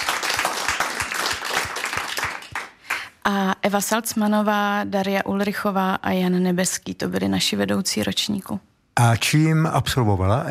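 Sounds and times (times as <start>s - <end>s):
applause: 0.0s - 3.2s
speech: 3.2s - 10.4s.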